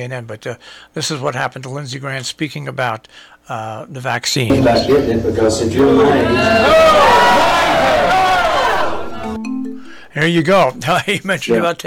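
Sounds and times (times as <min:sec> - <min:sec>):
speech: 0:00.0 - 0:08.2, 0:10.2 - 0:11.8
crowd booing a speaker: 0:04.5 - 0:09.4.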